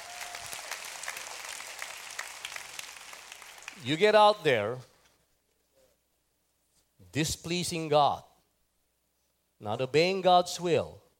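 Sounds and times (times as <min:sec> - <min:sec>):
audience applause: 0:00.0 - 0:03.8
speech: 0:03.8 - 0:04.9, 0:07.1 - 0:08.3, 0:09.6 - 0:11.0.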